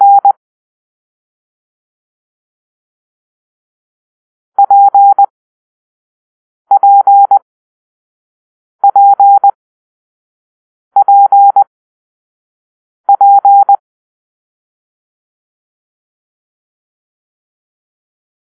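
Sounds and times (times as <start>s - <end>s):
morse code beeps for letter P: 0.0s - 0.3s, 4.6s - 5.3s, 6.7s - 7.4s, 8.8s - 9.6s, 11.0s - 11.6s, 13.1s - 13.8s.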